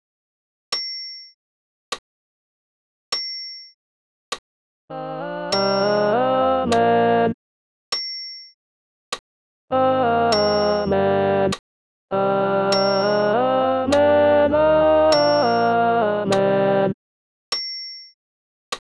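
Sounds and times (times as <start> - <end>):
alto voice with accompaniment: 4.9 - 7.4, 9.7 - 11.5, 12.1 - 17.0.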